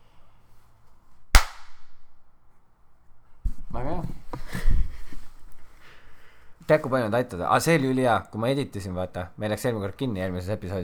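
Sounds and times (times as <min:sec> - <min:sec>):
single hand clap for editing sync: 0:01.4 - 0:01.8
speech: 0:06.7 - 0:10.8.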